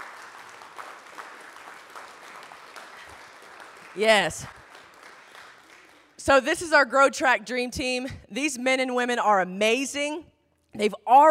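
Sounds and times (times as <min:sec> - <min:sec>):
audience applause: 0:00.0 - 0:06.2
speech: 0:04.0 - 0:04.6, 0:06.2 - 0:11.2.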